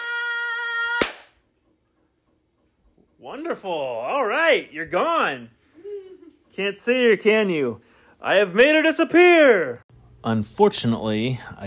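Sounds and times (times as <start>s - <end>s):
hands clapping: 1.0s - 1.4s
speech: 3.2s - 5.6s, 6.6s - 11.6s.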